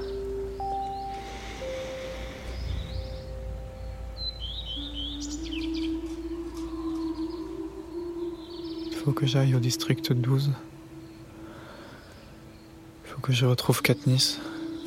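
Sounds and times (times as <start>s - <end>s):
steady low rumble: 0.0s - 8.4s
birds chirping and whistling: 0.0s - 14.8s
speech: 9.0s - 10.8s, 13.3s - 14.5s.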